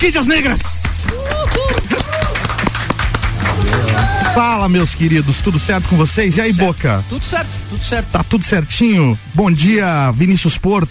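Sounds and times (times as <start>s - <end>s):
speech: 0.0s - 2.1s, 4.4s - 10.8s
applause from studio guests: 0.0s - 6.2s.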